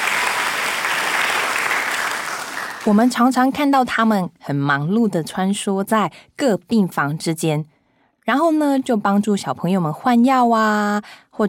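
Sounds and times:
audience applause: 0.0 - 3.2
speech: 2.8 - 11.4.

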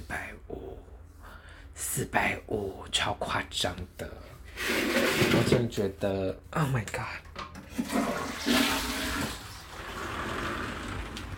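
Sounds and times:
speech: 1.9 - 8.6
toilet flushing: 4.5 - 5.6, 7.6 - 11.3.

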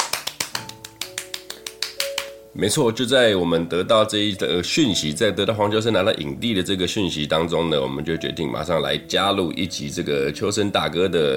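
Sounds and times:
hand claps: 0.0 - 2.4
speech: 2.5 - 11.3.

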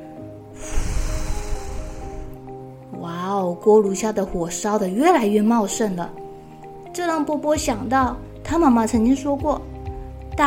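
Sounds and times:
deep inhale: 0.5 - 2.6
speech: 3.4 - 6.2, 7.0 - 9.7.

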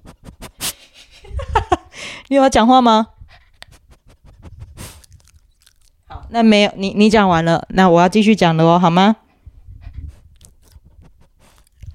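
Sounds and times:
dog panting: 0.0 - 1.2, 2.9 - 5.9, 9.2 - 11.9
low rustling and snuffling: 0.0 - 1.8, 3.1 - 6.1, 9.4 - 11.9
speech: 2.3 - 3.2, 6.3 - 9.2.

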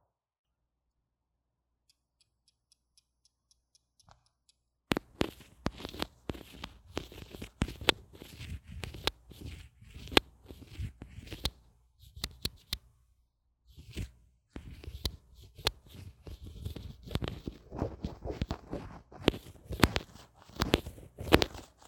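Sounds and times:
line microphone being handled: 4.9 - 11.6, 13.8 - 21.8
scraping rubbing and tapping on a line microphone: 4.9 - 12.9, 13.7 - 21.8.

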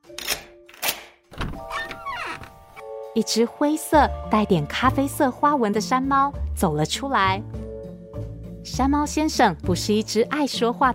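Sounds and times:
door creaking: 0.2 - 2.8
door latch clunks: 0.3 - 2.6
speech: 3.2 - 7.6, 8.7 - 10.9.

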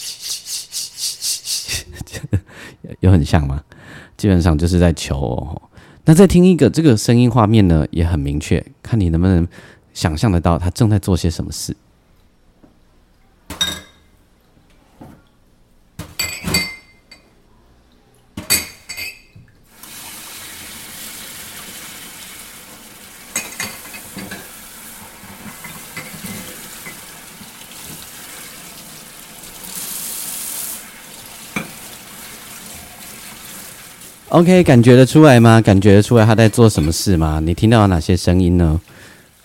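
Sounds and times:
speech: 3.0 - 11.9, 34.4 - 38.9
glass cups clinking: 16.2 - 17.3, 18.5 - 19.4, 23.3 - 24.5, 25.6 - 27.1, 31.5 - 31.8
running tap water: 19.7 - 39.4.

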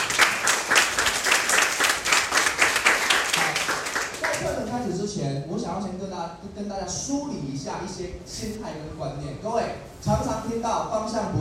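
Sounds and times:
audience applause: 0.0 - 4.7
speech: 5.8 - 11.4.

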